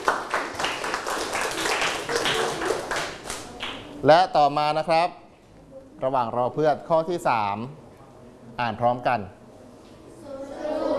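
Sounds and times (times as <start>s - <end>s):
classroom applause: 0.0s - 3.8s
speech: 4.0s - 5.2s, 6.0s - 7.8s, 8.6s - 9.4s.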